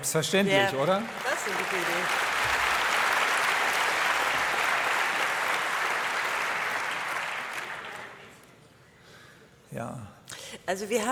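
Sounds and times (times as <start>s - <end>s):
speech: 0.0s - 2.6s, 9.7s - 11.1s
crowd applauding: 0.0s - 8.6s.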